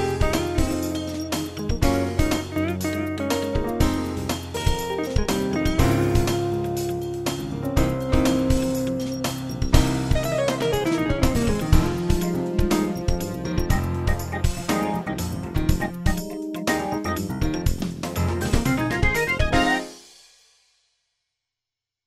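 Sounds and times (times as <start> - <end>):
jazz music: 0.0 - 20.0
synth: 7.8 - 19.9.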